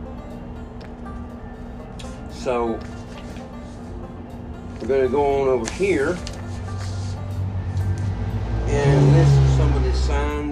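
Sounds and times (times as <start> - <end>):
speech: 2.4 - 3.0, 4.8 - 6.3
car engine with a troubled motor revving outside: 7.1 - 10.5.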